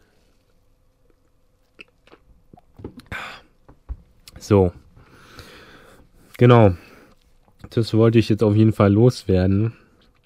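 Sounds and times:
person drinking: 1.1s - 3.5s
breathy burst: 3.1s - 3.5s, 5.0s - 7.2s
speech: 4.4s - 4.8s, 6.4s - 6.9s, 7.7s - 9.8s.

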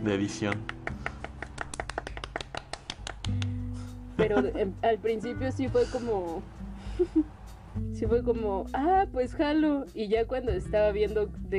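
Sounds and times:
speech: 0.0s - 1.1s, 4.2s - 11.5s
hand claps: 0.3s - 3.8s
laughter: 4.2s - 4.8s, 6.8s - 7.3s.

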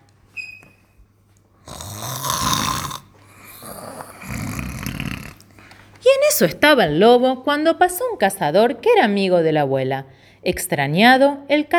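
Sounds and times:
loud snoring: 1.6s - 5.5s
speech: 6.4s - 11.7s.

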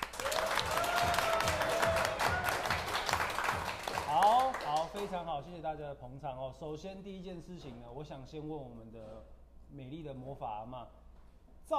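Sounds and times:
audience applause: 0.0s - 5.1s
speech: 5.1s - 11.0s.

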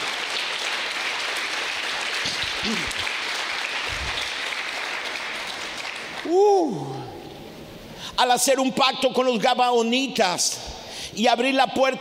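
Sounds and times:
audience applauding loudly: 0.0s - 7.0s
speech: 2.6s - 3.0s, 8.2s - 11.9s.

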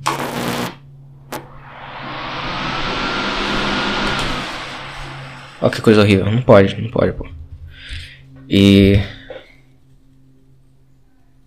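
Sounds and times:
electric fan switched on: 1.0s - 6.8s
speech: 5.6s - 7.4s, 8.5s - 9.2s.

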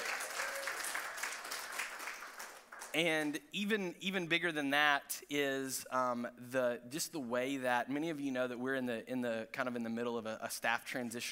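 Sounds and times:
audience applause: 0.0s - 3.0s
speech: 2.9s - 11.3s.

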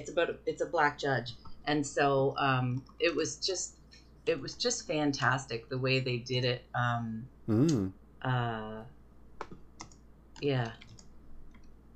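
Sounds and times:
speech: 0.0s - 9.0s, 10.4s - 10.9s
wordless vocal sounds: 7.5s - 7.9s
typing on a computer keyboard: 9.4s - 11.9s.

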